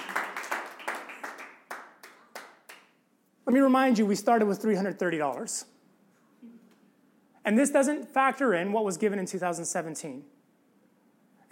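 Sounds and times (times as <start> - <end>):
audience clapping: 0.0 - 3.0
speech: 3.5 - 5.7, 7.4 - 10.4.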